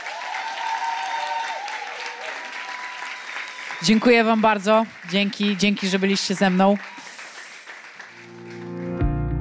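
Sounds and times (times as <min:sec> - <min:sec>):
applause: 0:00.0 - 0:09.3
speech: 0:03.8 - 0:07.0.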